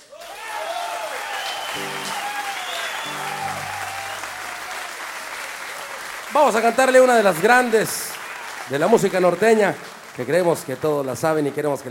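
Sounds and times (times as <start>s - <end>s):
audience applause: 0.0s - 11.8s
speech: 6.4s - 8.1s, 8.7s - 11.8s.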